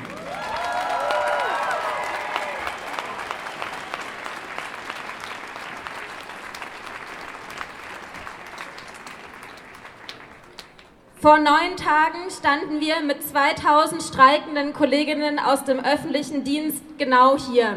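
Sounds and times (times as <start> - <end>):
thunderous applause from a rally crowd: 0.0 - 10.9
speech: 11.2 - 17.7.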